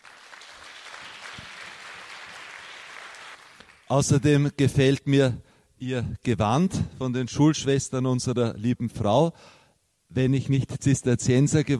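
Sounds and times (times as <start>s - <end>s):
audience applause: 0.0s - 3.9s
speech: 3.9s - 11.7s.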